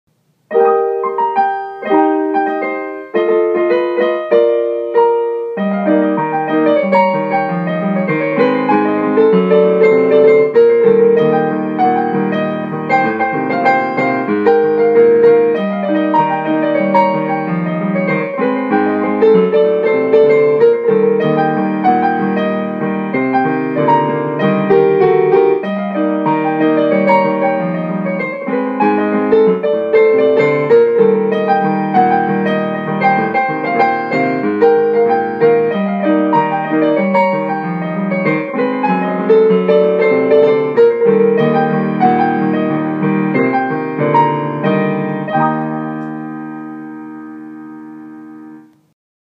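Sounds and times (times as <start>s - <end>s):
jazz music: 0.4s - 48.9s.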